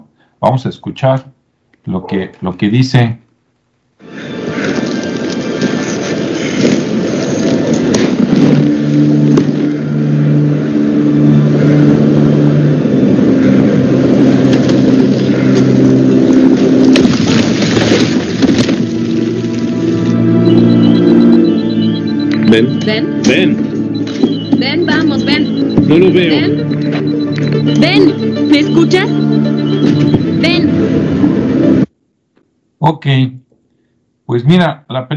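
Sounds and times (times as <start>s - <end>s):
speech: 0.4s - 3.2s, 22.5s - 23.6s, 24.9s - 26.7s, 27.6s - 31.2s, 32.8s - 33.4s, 34.3s - 35.1s
train rolling on rails: 4.0s - 31.9s
droning engine tones: 4.1s - 31.9s.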